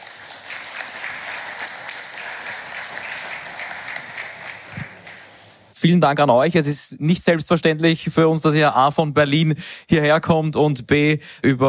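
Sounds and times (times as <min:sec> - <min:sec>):
audience applause: 0:00.0 - 0:05.7
speech: 0:05.8 - 0:11.6.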